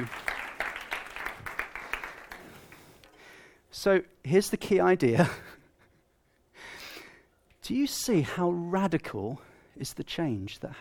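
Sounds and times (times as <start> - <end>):
speech: 0.0 - 0.2, 3.8 - 5.5, 7.7 - 10.8
audience applause: 0.0 - 3.0.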